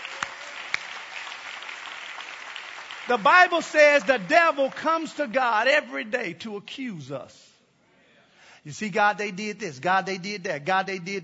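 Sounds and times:
crowd clapping: 0.0 - 5.5
speech: 3.1 - 7.5, 8.6 - 11.2.

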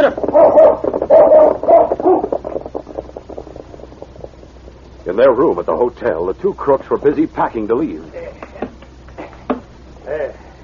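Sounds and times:
speech: 0.0 - 1.6, 5.2 - 8.2
dog barking: 0.3 - 2.3.

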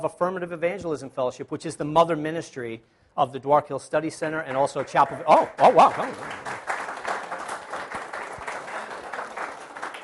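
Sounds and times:
speech: 0.0 - 6.7
audience clapping: 4.5 - 10.0.

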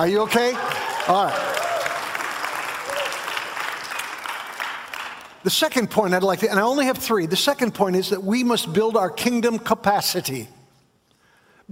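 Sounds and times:
speech: 0.0 - 1.6, 5.4 - 10.6
audience clapping: 0.0 - 5.8.

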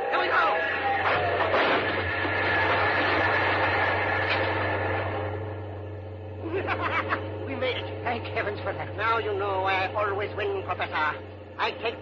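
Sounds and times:
train passing at a level crossing: 0.0 - 12.0
laughter: 6.4 - 7.4
speech: 8.7 - 12.0.

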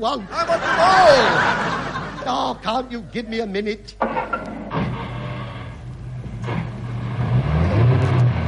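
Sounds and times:
speech: 0.0 - 4.2
laughter: 0.1 - 2.7
sharp clunks: 4.0 - 5.2
car engine starting, idling and accelerating away: 4.2 - 8.4.

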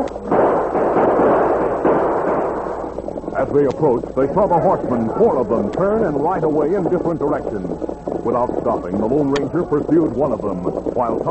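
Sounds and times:
speech: 0.0 - 0.4, 3.5 - 11.2
burst of gunfire: 0.2 - 3.8.

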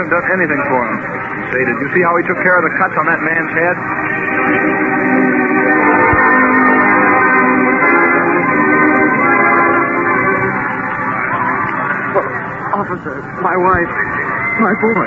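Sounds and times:
speech: 0.0 - 5.0, 12.8 - 15.0
approaching ambulance horn blaring: 3.6 - 12.1.

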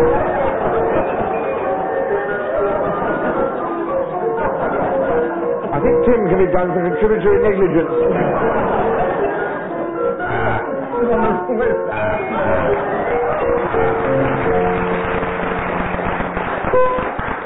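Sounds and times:
audience round of applause: 0.0 - 5.4, 12.2 - 17.4
laughter: 0.0 - 14.9
speech: 6.4 - 8.8.

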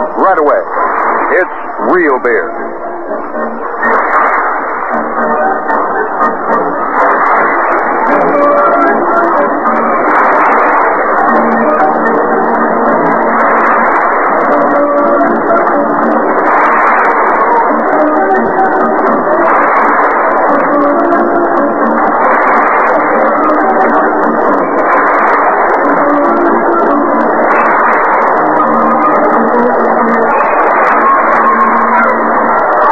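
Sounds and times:
ballpark organ music during seventh-inning stretch: 0.0 - 32.9
speech: 0.2 - 4.2.

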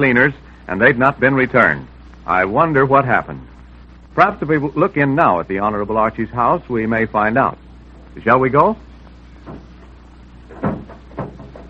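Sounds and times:
speech: 0.0 - 3.5, 4.2 - 7.6, 8.2 - 8.9, 9.5 - 9.7
low hum: 0.0 - 11.6
soft knocks and bumps: 9.4 - 11.6
door slamming shut with a heavy thud: 10.5 - 11.6.

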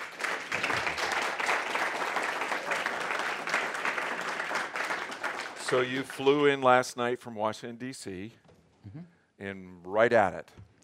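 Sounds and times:
audience applause: 0.0 - 6.5
speech: 5.7 - 10.7.

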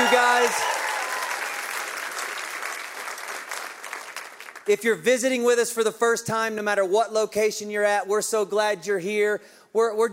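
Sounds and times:
crowd clapping and cheering: 0.0 - 4.8
speech: 4.7 - 10.1.

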